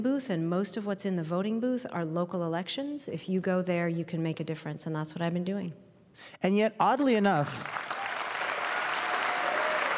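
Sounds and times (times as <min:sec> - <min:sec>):
speech: 0:00.0 - 0:08.0
soft audience applause: 0:07.6 - 0:09.9.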